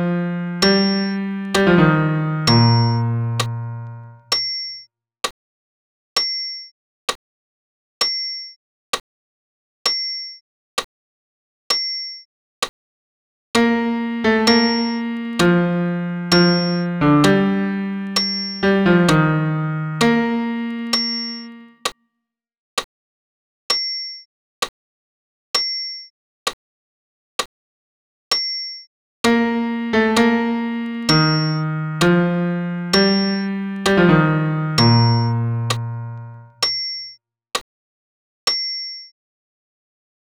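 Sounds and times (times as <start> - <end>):
solo low piano: 0.0 - 4.3, 13.6 - 21.7, 29.3 - 36.6.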